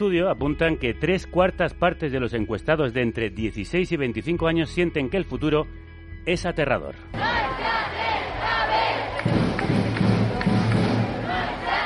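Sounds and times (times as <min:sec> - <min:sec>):
speech: 0:00.0 - 0:08.0
large crowd of young protesters chanting slogans: 0:07.1 - 0:11.8.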